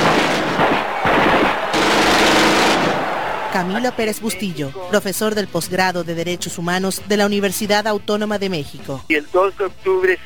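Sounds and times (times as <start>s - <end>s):
army automatic gunfire in the Plaza de las Tres Culturas, Tlatelolco: 0.0s - 3.5s
speech: 3.6s - 10.2s.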